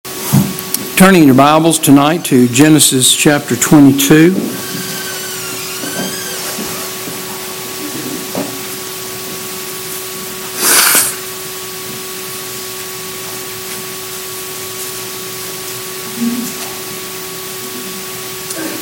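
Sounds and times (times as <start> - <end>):
steady electrical hum: 0.1 - 18.8
speech: 1.0 - 4.9
person blowing nose: 10.5 - 11.3.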